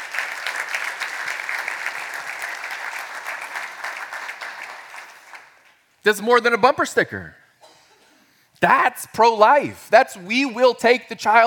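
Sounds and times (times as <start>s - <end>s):
people clapping: 0.0s - 6.0s
speech: 6.0s - 7.4s, 8.6s - 11.4s.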